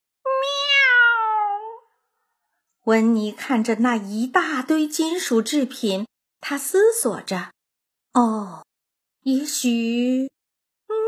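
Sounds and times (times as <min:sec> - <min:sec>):
cat meowing: 0:00.3 - 0:01.9
speech: 0:02.8 - 0:07.6, 0:08.2 - 0:10.4.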